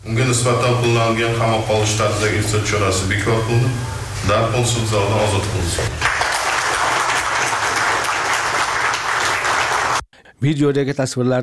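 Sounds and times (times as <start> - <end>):
speech: 0.1 - 6.2, 10.4 - 11.4
applause in a courtroom as a detainee is freed: 5.6 - 10.1.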